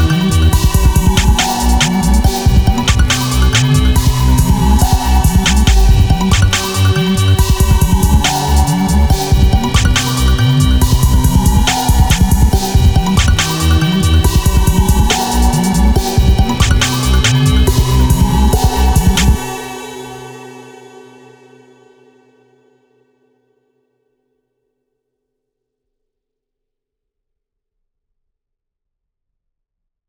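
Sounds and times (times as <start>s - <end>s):
remix music: 0.0s - 19.8s.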